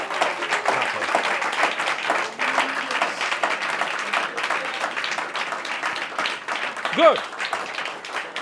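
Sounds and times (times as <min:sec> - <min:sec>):
audience clapping: 0:00.0 - 0:08.4
speech: 0:07.0 - 0:07.4.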